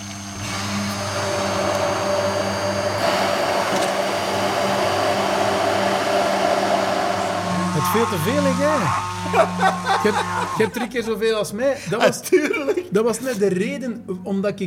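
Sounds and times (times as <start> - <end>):
electric hand mixer blending homemade mayonnaise: 0.0 - 10.8
speech: 7.9 - 14.6
laughter: 9.2 - 11.2, 11.8 - 12.9.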